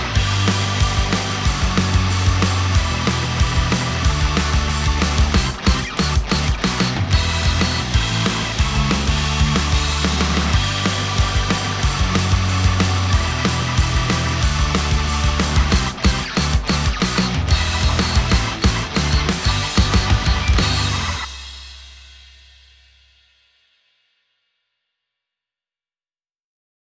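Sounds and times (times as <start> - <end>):
instrumental music: 0.0 - 21.3.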